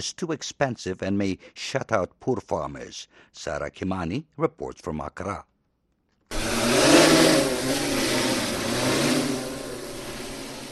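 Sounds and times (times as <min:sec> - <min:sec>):
speech: 0:00.0 - 0:05.5
multispectral drone rotors buzzing while flying: 0:06.3 - 0:10.7.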